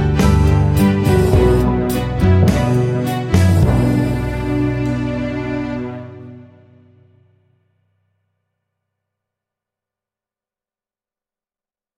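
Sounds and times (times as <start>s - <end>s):
orchestra: 0.0s - 7.0s.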